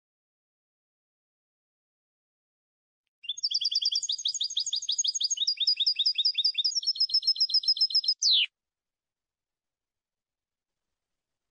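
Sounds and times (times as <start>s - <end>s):
European goldfinch song: 3.2s - 8.5s.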